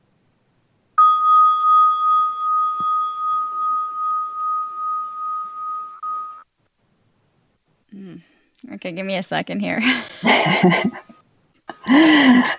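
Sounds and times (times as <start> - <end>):
meditation bell ringing: 1.0 - 6.4
speech: 8.8 - 11.1.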